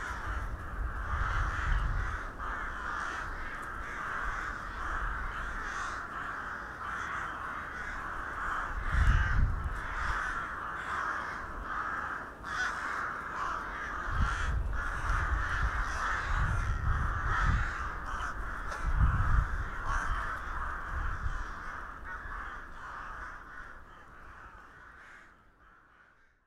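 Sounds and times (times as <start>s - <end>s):
crows cawing in a noisy flock: 0.0s - 26.4s.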